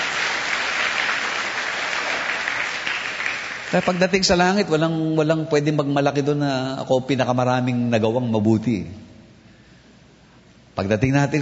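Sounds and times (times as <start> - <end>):
congregation applauding in praise of Jesus during a sermon: 0.0 - 4.6
speech: 3.7 - 9.0, 10.8 - 11.4.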